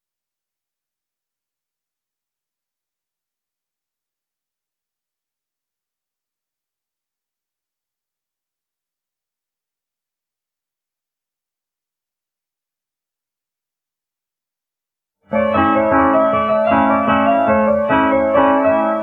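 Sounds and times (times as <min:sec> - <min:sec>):
piano: 0:15.2 - 0:19.0.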